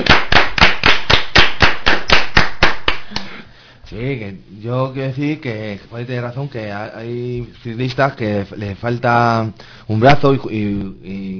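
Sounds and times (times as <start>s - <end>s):
applause: 0.0s - 3.2s
speech: 4.0s - 11.3s.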